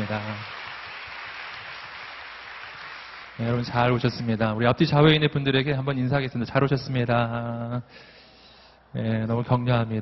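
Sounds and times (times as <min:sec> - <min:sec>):
audience applause: 0:00.0 - 0:03.7
speech: 0:00.1 - 0:00.6, 0:03.4 - 0:08.2, 0:08.9 - 0:09.9.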